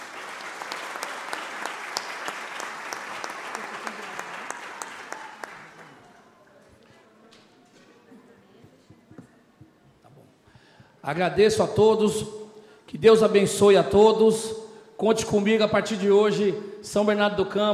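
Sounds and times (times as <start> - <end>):
applause: 0.0 - 6.4
speech: 11.1 - 12.4, 13.0 - 17.7.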